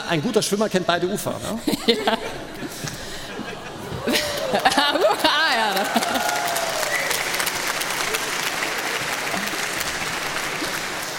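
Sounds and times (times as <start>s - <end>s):
speech: 0.1s - 2.9s
laughter: 1.5s - 6.8s
audience applause: 4.0s - 11.1s.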